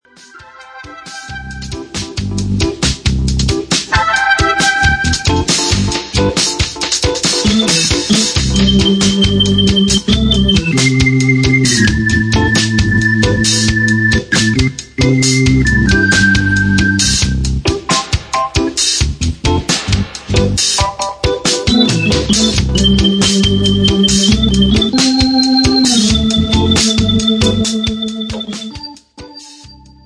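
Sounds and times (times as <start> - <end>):
drums: 0.1 - 30.0
organ: 0.2 - 30.0.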